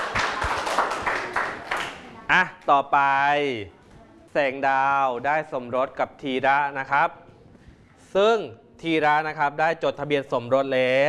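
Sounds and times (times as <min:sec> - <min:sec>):
small group clapping: 0:00.0 - 0:02.2
speech: 0:02.3 - 0:03.8, 0:04.4 - 0:07.2, 0:08.1 - 0:11.0.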